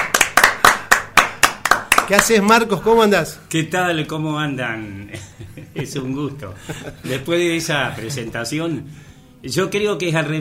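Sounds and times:
audience clapping: 0:00.0 - 0:02.7
speech: 0:02.1 - 0:10.3
laughter: 0:05.1 - 0:07.4.

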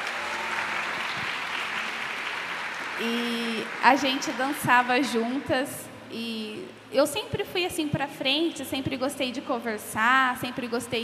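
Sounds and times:
round of applause: 0:00.0 - 0:05.2
speech: 0:03.0 - 0:11.0.

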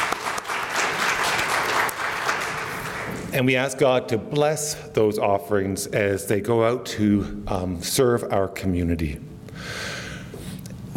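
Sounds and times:
crowd applauding: 0:00.0 - 0:03.3
speech: 0:03.4 - 0:09.9.

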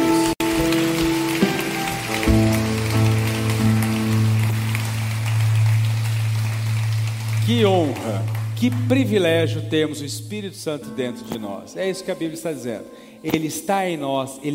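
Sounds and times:
audience applause: 0:00.0 - 0:09.3
sustained low keyboard chords: 0:00.0 - 0:12.9
speech: 0:07.6 - 0:14.5.

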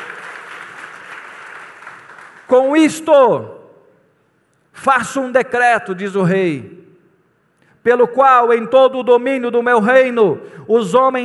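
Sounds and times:
audience applause: 0:00.0 - 0:02.5
speech: 0:02.5 - 0:03.6, 0:04.8 - 0:06.8, 0:07.8 - 0:11.2.

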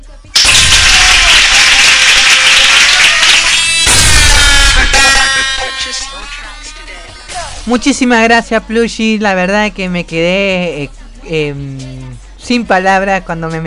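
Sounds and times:
audience applause: 0:00.4 - 0:05.6
cheering: 0:00.4 - 0:05.9
speech: 0:07.7 - 0:13.6.

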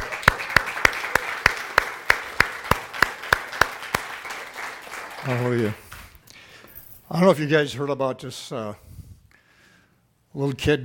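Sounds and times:
church congregation clapping for guests: 0:00.0 - 0:06.2
speech: 0:05.2 - 0:05.8, 0:07.1 - 0:08.8, 0:10.4 - 0:10.8.

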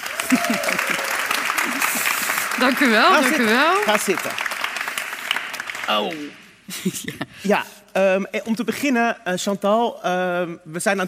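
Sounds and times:
audience applause: 0:00.0 - 0:06.4
laughter: 0:00.1 - 0:03.8, 0:06.7 - 0:07.5
speech: 0:00.3 - 0:04.4, 0:05.9 - 0:11.0.

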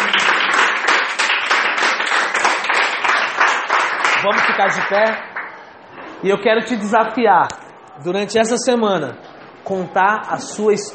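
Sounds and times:
audience applause: 0:00.0 - 0:05.6
speech: 0:04.2 - 0:05.4, 0:06.2 - 0:10.9.

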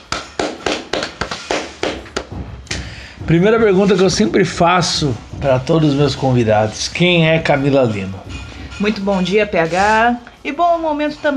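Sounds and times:
sharp bright claps: 0:00.0 - 0:02.9
speech: 0:03.3 - 0:08.2, 0:08.8 - 0:11.3.

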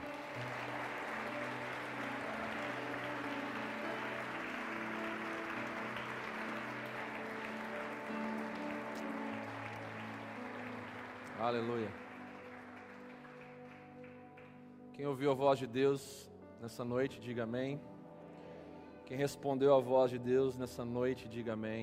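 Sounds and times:
church audience applauding: 0:00.0 - 0:14.7
speech: 0:11.4 - 0:12.0, 0:15.0 - 0:17.9, 0:19.1 - 0:21.8.

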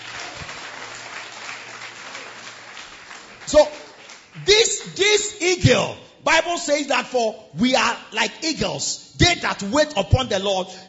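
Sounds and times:
audience clapping: 0:00.0 - 0:05.2
speech: 0:03.5 - 0:03.8, 0:04.4 - 0:10.8.

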